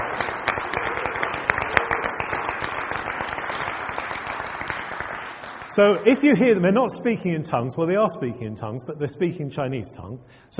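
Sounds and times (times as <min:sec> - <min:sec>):
crowd applauding: 0:00.0 - 0:06.6
speech: 0:05.8 - 0:10.5.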